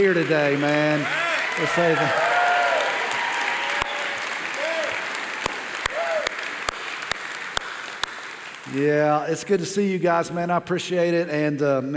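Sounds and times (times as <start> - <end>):
speech: 0.0 - 2.3, 8.7 - 11.9
audience applause welcoming a Division II college baseball team: 0.0 - 8.8
people whooping: 0.9 - 6.5.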